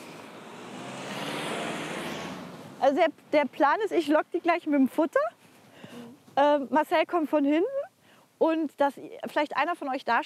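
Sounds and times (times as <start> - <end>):
car approaching on a village road: 0.0 - 4.4
speech: 2.8 - 5.4, 6.4 - 7.8, 8.4 - 10.2.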